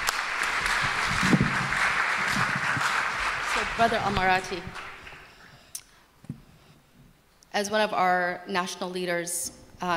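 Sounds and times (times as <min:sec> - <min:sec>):
audience applause: 0:00.0 - 0:05.5
speech: 0:03.8 - 0:04.8, 0:07.6 - 0:09.9.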